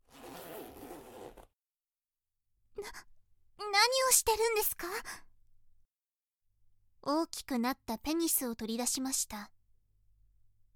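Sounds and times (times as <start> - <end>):
trouser zipper pulled down by an interrogator: 0.0 - 1.6
speech: 4.1 - 5.3, 7.0 - 9.6.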